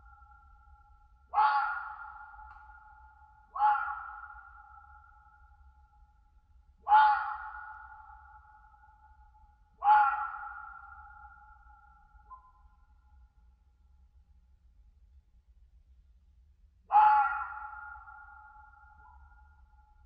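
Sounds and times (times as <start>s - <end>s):
red fox screaming in winter in a European mountain forest: 1.3s - 2.1s, 3.6s - 4.3s, 6.9s - 7.6s, 9.8s - 10.9s, 16.9s - 18.2s.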